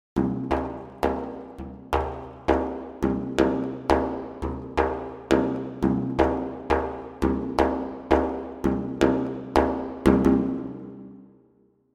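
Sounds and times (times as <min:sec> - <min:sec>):
frame drum: 0:00.2 - 0:11.1.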